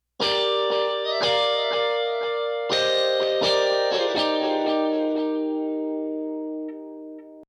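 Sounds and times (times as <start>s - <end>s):
guitar: 0.2s - 7.4s.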